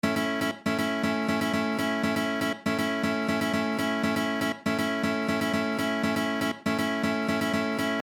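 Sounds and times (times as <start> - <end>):
rhythm guitar: 0.0 - 8.0.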